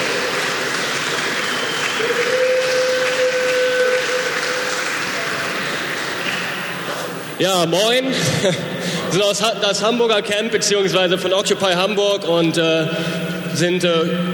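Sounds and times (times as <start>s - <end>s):
audience clapping: 0.0s - 7.4s
faint high whistle-like tone: 1.4s - 4.8s
speech: 7.4s - 14.3s
laughter: 8.0s - 9.1s.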